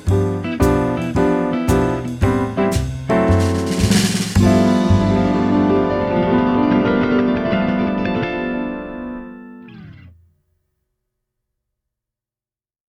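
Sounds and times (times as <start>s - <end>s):
standard jazz blues playback: 0.0s - 10.1s.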